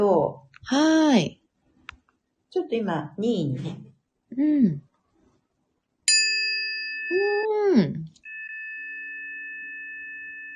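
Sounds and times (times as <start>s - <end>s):
speech: 0.0s - 1.4s, 2.5s - 4.8s
healing tuning fork struck and ringing: 6.1s - 7.5s, 8.2s - 10.5s.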